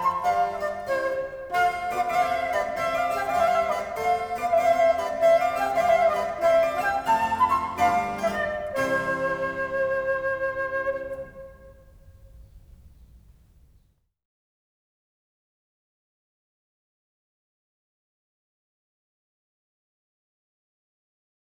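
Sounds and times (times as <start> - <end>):
fast sonata movement in C: 0.0 - 13.7.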